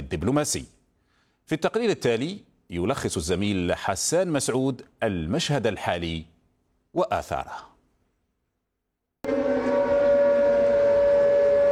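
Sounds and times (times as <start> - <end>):
speech: 0.1 - 0.8, 1.5 - 6.3, 6.9 - 7.7
air raid warning siren wailing: 9.2 - 11.7.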